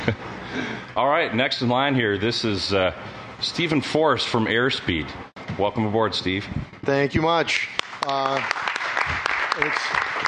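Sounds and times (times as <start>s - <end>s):
speech: 0.0s - 10.1s
audience applause: 7.8s - 10.2s.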